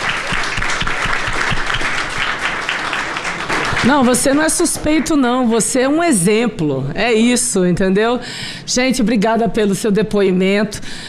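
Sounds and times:
audience applause: 0.0 - 5.0
speech: 3.8 - 11.0.

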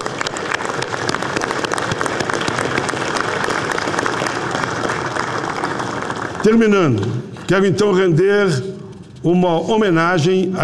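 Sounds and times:
audience applause: 0.0 - 7.7
speech: 6.4 - 10.6.

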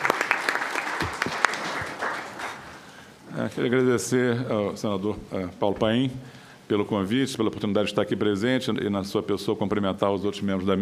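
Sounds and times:
audience applause: 0.0 - 3.0
speech: 3.4 - 10.8.

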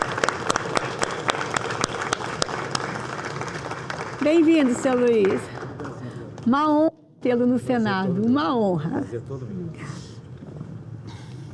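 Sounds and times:
applause for guests at a Senate session: 0.0 - 6.5
speech: 4.2 - 5.5, 6.4 - 10.0.

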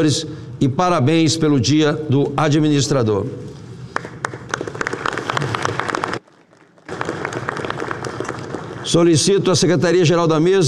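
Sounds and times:
speech: 0.0 - 3.6, 8.9 - 10.6
audience applause: 4.0 - 9.0.

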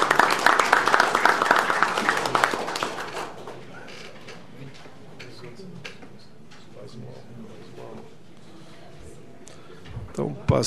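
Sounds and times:
audience applause: 0.0 - 3.6.

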